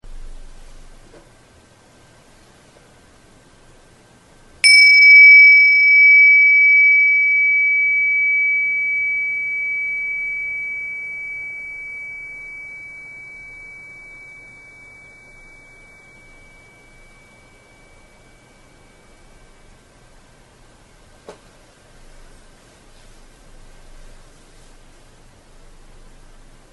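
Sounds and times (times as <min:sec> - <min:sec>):
gong: 0:04.6 - 0:19.8.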